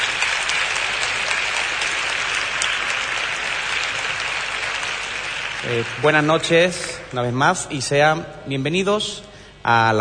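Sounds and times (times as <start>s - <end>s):
loud audience applause: 0.0s - 7.2s
speech: 5.6s - 9.9s.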